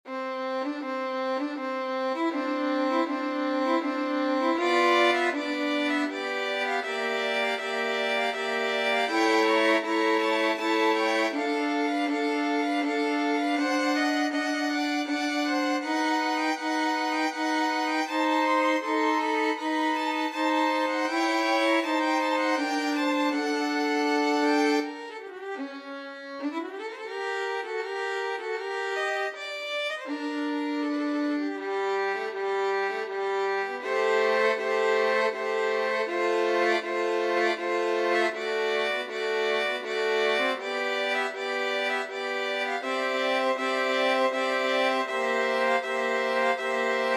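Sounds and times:
slow violin piece: 0.1s - 47.1s.

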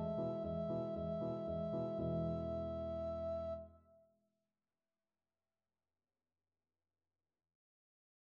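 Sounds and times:
recorder playing classical piece: 0.0s - 3.7s.

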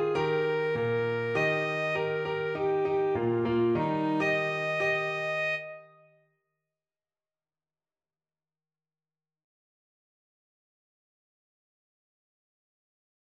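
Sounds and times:
alto saxophone: 0.0s - 6.0s.

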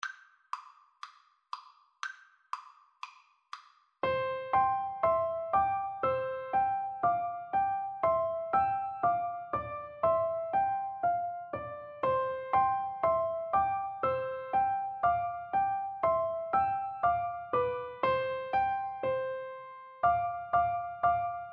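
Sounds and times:
piano duet: 4.0s - 21.5s.

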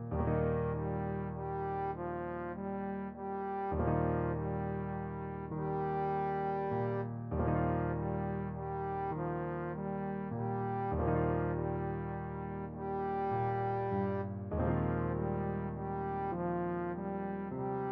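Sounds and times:
trombone: 0.1s - 17.9s.

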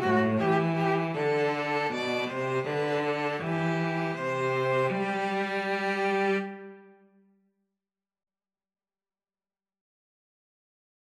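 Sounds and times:
string trio playing: 0.0s - 6.9s.

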